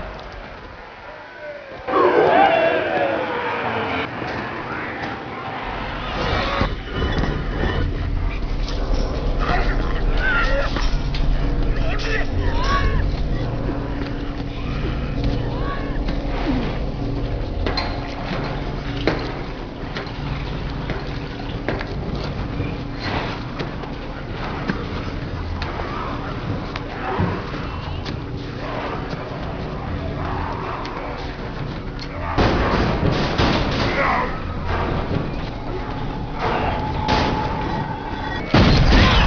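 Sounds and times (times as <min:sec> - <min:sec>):
ambient music: 0:01.9 - 0:39.2.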